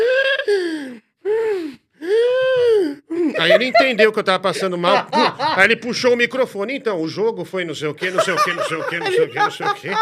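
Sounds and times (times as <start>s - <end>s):
person imitating breathless asthmatic gasping after running: 0.0s - 3.4s
laughter: 3.3s - 6.1s, 8.0s - 10.0s
speech: 3.4s - 10.0s.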